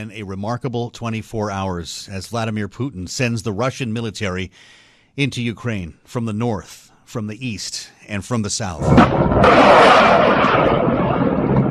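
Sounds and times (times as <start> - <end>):
speech: 0.0 - 11.3
missile attack explosions in Ukraine: 8.8 - 11.6.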